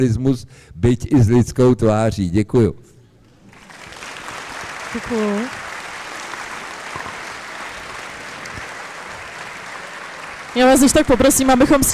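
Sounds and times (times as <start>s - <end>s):
speech: 0.0s - 2.9s, 4.9s - 5.6s, 10.6s - 11.9s
audience applause after a speech: 3.3s - 11.9s.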